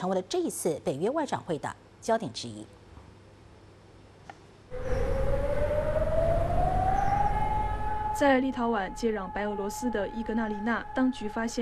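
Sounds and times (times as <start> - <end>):
speech: 0.0 - 2.8, 8.2 - 11.6
air raid siren: 4.7 - 11.6.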